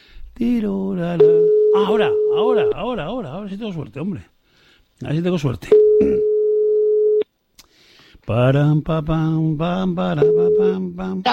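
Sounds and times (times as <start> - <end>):
speech: 0.4 - 4.4, 5.0 - 6.3, 8.3 - 11.3
steady electronic telephone tone of unanswered call: 1.2 - 2.8, 5.7 - 7.2, 10.2 - 10.8.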